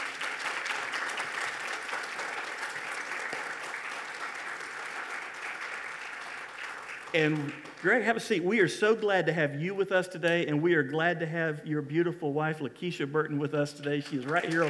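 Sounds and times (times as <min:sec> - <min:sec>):
Fort Caroline Baptist Church congregation applauding: 0:00.0 - 0:08.9, 0:13.8 - 0:14.6
speech: 0:07.1 - 0:14.6.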